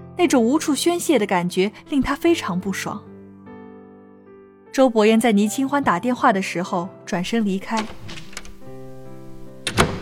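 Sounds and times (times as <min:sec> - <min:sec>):
speech: 0:00.2 - 0:03.1, 0:04.8 - 0:08.2
door slamming shut: 0:07.6 - 0:08.6, 0:09.6 - 0:09.9.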